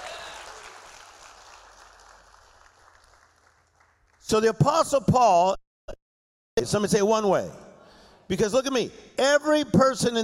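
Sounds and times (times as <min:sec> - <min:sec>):
audience clapping: 0:00.0 - 0:04.4
speech: 0:04.3 - 0:06.0, 0:06.6 - 0:07.6, 0:08.3 - 0:10.2.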